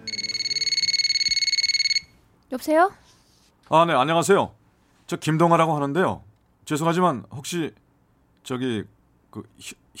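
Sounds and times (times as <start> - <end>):
telephone ringing: 0.0 - 2.2
speech: 2.5 - 3.0, 3.7 - 7.8, 8.4 - 9.9.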